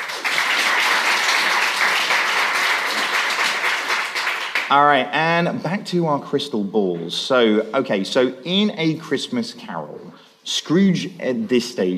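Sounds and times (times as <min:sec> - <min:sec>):
crowd applause: 0:00.0 - 0:04.7
speech: 0:04.7 - 0:11.9.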